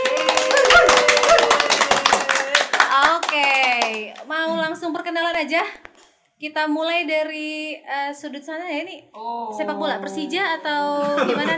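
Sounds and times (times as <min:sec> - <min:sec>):
people whooping and cheering: 0:00.0 - 0:03.0
small crowd clapping: 0:00.0 - 0:04.4
speech: 0:05.0 - 0:05.8, 0:06.4 - 0:11.5
laughter: 0:10.8 - 0:11.5.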